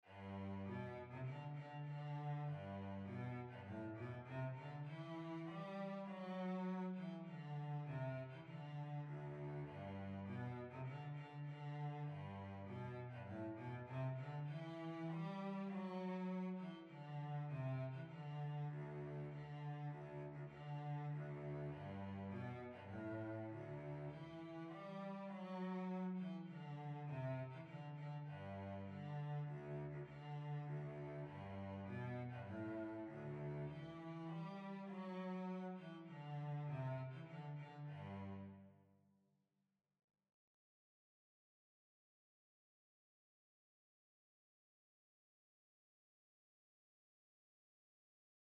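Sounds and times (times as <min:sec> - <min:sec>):
polka on cello: 0:00.0 - 0:38.7.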